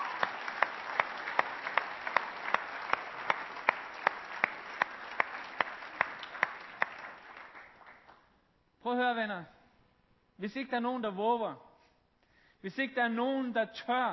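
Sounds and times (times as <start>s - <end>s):
audience clapping in unison: 0.0s - 8.4s
speech: 8.9s - 9.6s, 10.4s - 11.7s, 12.6s - 14.1s.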